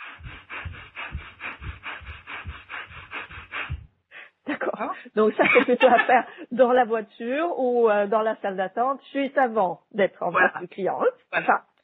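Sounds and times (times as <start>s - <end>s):
rapid breathing in and out through nose: 0.0s - 4.4s
laughter: 4.5s - 6.5s
speech: 4.8s - 11.7s.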